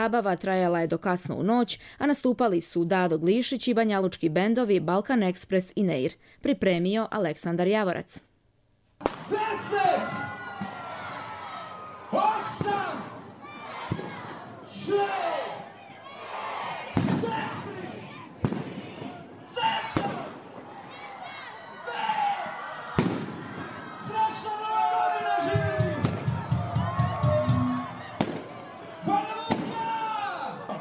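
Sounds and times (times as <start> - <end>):
speech: 0.0 - 8.3, 9.0 - 10.2
New Year's fireworks: 9.0 - 10.3, 12.4 - 13.3, 16.9 - 21.0, 22.9 - 24.4, 25.9 - 26.5, 28.2 - 28.7, 29.4 - 30.0
crowd cheering: 9.1 - 30.7.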